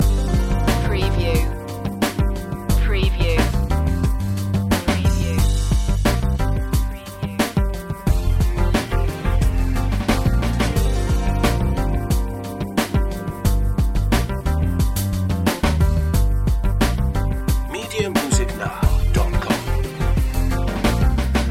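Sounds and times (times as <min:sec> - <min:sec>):
lounge music loop: 0:00.0 - 0:21.4.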